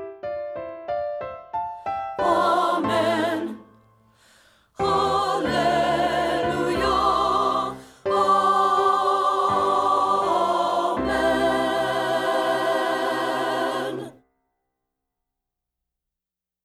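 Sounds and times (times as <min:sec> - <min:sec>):
alto voice singing: 0:02.2 - 0:03.8, 0:04.8 - 0:14.2.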